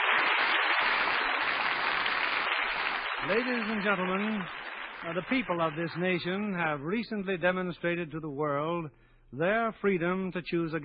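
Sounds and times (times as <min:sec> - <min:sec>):
audience applause: 0:00.0 - 0:06.4
speech: 0:03.2 - 0:10.8.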